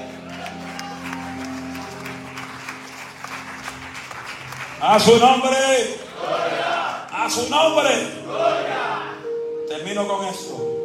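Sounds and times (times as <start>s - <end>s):
loud audience applause: 0.0s - 7.1s
speech: 4.8s - 6.4s, 7.3s - 8.6s, 9.8s - 10.8s.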